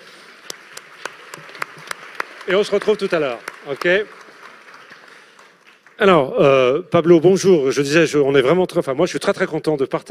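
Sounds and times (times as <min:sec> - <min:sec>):
audience applause: 0:00.0 - 0:06.7
speech: 0:02.5 - 0:04.2, 0:06.0 - 0:10.0.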